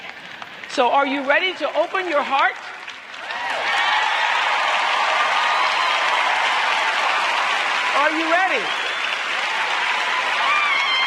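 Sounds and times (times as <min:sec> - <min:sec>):
audience applauding: 0:00.0 - 0:11.0
speech: 0:00.8 - 0:02.7, 0:07.9 - 0:08.8
audience cheering: 0:03.1 - 0:11.0.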